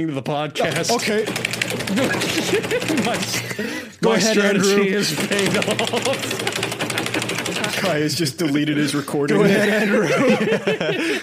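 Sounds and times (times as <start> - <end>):
speech: 0.0 - 7.0, 7.8 - 11.2
loud pounding on a computer keyboard: 0.6 - 3.5, 5.1 - 7.9
laughter: 0.6 - 8.2, 8.9 - 11.2.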